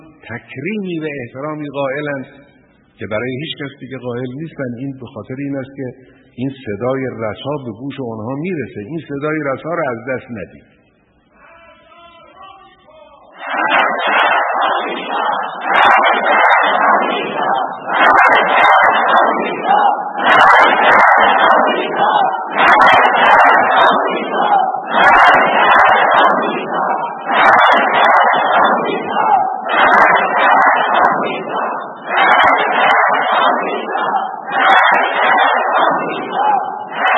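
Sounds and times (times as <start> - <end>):
speech: 0.3 - 10.7
Iranian crowd chanting a slogan in unison: 11.4 - 37.1.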